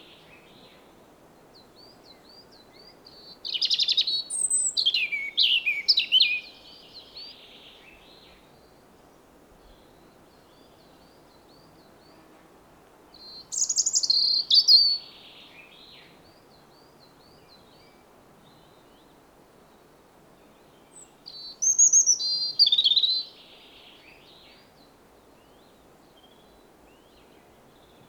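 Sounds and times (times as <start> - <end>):
European robin song: 3.1 - 7.4, 13.2 - 16.1, 21.0 - 24.7.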